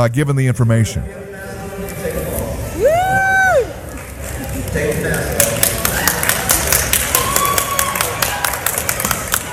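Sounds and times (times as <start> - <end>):
speech: 0.0 - 2.2, 4.7 - 5.6
scattered shouts and chatter: 2.7 - 4.0, 5.6 - 9.5
crowd in an airport cheering and clapping: 2.8 - 9.5.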